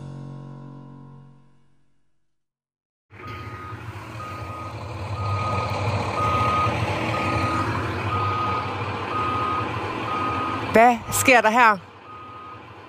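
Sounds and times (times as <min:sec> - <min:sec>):
truck reversing beeps: 0:03.1 - 0:12.8
speech: 0:10.8 - 0:11.9.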